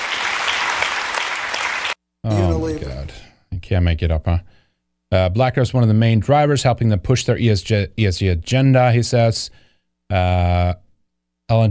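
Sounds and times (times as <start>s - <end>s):
applause: 0.0s - 2.0s
speech: 2.2s - 10.8s, 11.5s - 11.6s.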